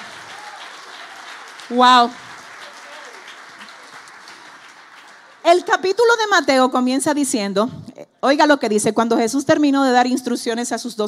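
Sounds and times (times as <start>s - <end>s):
audience applause: 0.0s - 6.5s
speech: 1.7s - 2.2s, 5.5s - 11.0s.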